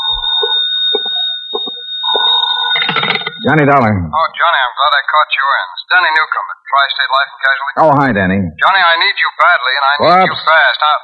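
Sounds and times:
telephone ringing: 0.0 - 3.9
speech: 3.4 - 11.0.

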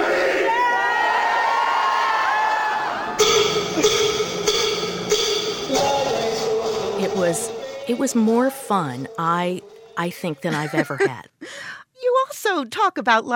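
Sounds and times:
librarians screaming and cheering at a convention: 0.0 - 8.0
speech: 7.2 - 11.6, 12.5 - 13.3
laughter: 10.4 - 11.3.

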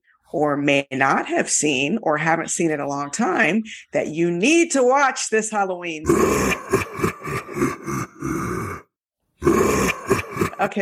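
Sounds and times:
speech: 0.3 - 7.7, 10.6 - 10.8
voice imitating a scream: 6.0 - 10.8.

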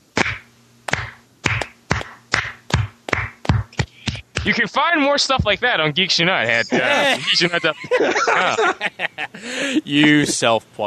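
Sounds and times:
person clapping: 0.2 - 4.6
speech: 4.4 - 10.8
laughter: 6.4 - 10.6.

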